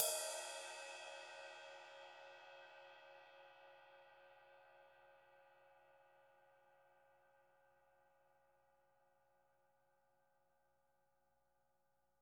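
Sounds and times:
cymbal: 0.0 - 6.5.

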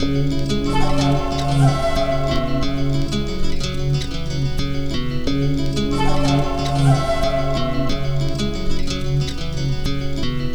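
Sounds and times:
hip-hop melody: 0.0 - 10.5.

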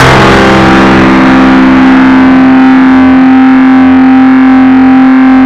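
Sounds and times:
big beat music: 0.0 - 3.4
distorted effects: 0.0 - 5.3.

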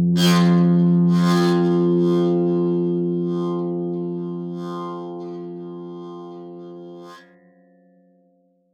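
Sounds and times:
harp: 0.2 - 7.6.

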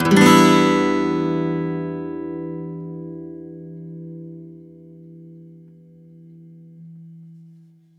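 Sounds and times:
E minor downstroke on an acoustic guitar: 0.0 - 7.9.

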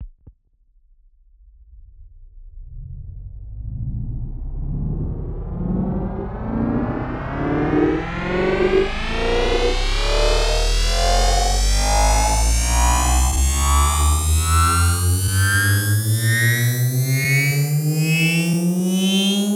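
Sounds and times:
rising sound: 4.4 - 19.5.

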